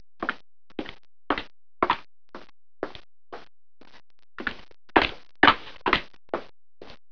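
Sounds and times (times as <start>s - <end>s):
footsteps: 0.2s - 7.0s.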